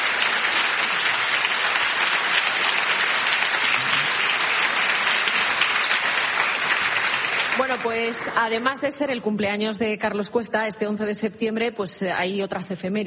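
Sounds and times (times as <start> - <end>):
studio audience applauding: 0.0 - 8.6
speech: 7.7 - 13.0.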